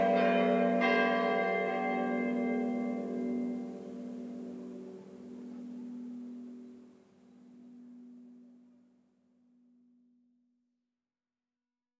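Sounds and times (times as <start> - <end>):
bells ringing: 0.0 - 7.0.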